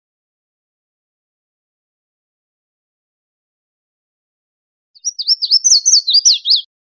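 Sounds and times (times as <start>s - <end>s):
red-faced warbler song: 5.0s - 6.7s.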